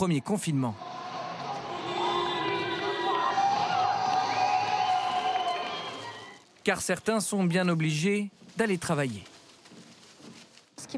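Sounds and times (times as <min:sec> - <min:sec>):
speech: 0:00.0 - 0:01.1, 0:06.6 - 0:09.3
applause and cheering from windows: 0:00.8 - 0:06.4
whistle-like tones over applause: 0:03.1 - 0:06.4.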